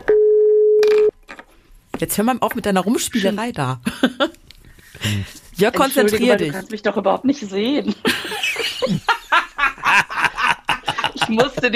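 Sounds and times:
phone ringback tone while calling: 0.1s - 1.1s
speech: 2.0s - 4.4s, 5.0s - 8.2s, 11.3s - 11.7s
laughter: 7.9s - 11.7s.

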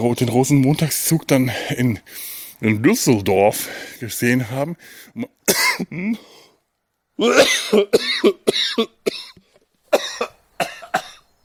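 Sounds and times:
speech: 0.0s - 6.4s, 7.2s - 9.3s
coughing: 5.5s - 6.3s, 7.2s - 11.3s.

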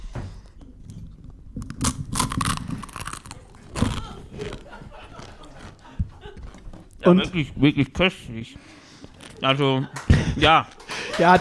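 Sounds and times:
crunchy food being chewed for ASMR: 0.4s - 7.1s
laughter: 3.4s - 7.4s, 8.6s - 11.3s
speech: 7.0s - 8.8s, 9.4s - 11.3s.

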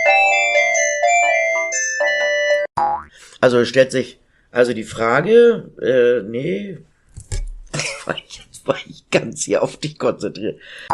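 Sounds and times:
telephone ringing: 0.0s - 2.7s
speech: 3.4s - 6.9s, 8.1s - 10.9s.

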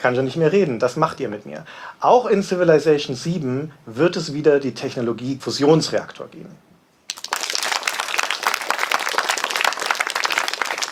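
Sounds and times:
speech: 0.0s - 6.7s
friendly audience applause: 7.1s - 10.9s.

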